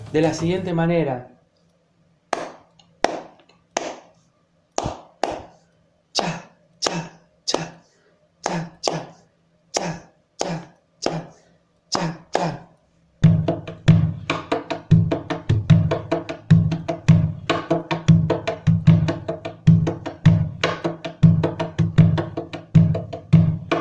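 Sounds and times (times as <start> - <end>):
speech: 0.1 - 1.4
hands clapping a candombe rhythm: 2.3 - 4.2, 4.8 - 5.6, 6.2 - 7.8, 8.4 - 9.2, 9.8 - 12.7, 13.4 - 23.8.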